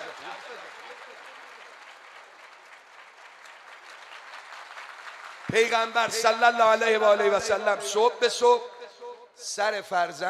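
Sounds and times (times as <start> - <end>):
audience clapping at a religious gathering: 0.0 - 7.2
speech: 5.5 - 8.7, 9.4 - 10.2.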